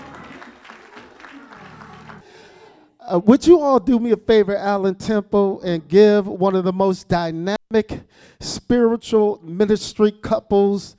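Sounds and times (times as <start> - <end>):
audience hand clapping: 0.0 - 2.3
speech: 3.1 - 10.9.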